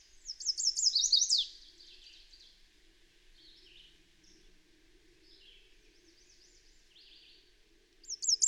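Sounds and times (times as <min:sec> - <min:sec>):
very high bird song of quick looping notes: 0:00.3 - 0:01.5, 0:08.1 - 0:08.4.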